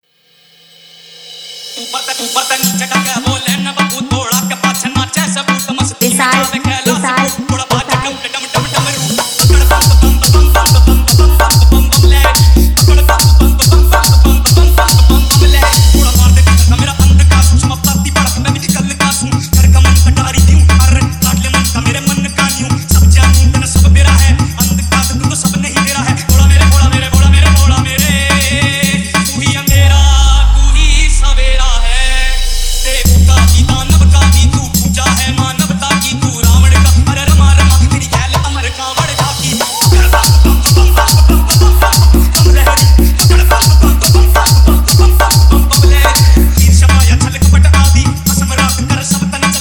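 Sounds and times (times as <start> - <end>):
dj remix song: 1.7 - 49.5.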